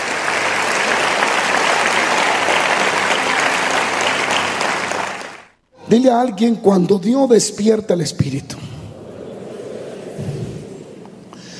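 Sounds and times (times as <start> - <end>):
audience applause: 0.0 - 5.6
speech: 5.9 - 8.8.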